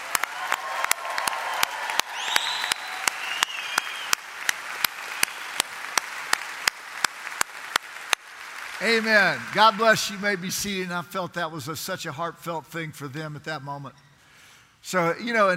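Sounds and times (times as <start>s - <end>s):
sustained audience applause: 0.0s - 10.7s
brief high whistle or cheer: 0.3s - 4.2s
speech: 8.8s - 14.0s, 14.8s - 15.5s.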